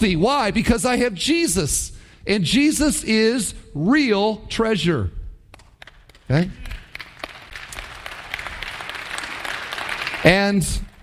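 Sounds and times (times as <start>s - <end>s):
speech: 0.0s - 5.2s, 6.3s - 6.6s, 10.2s - 10.9s
audience clapping: 5.5s - 11.0s.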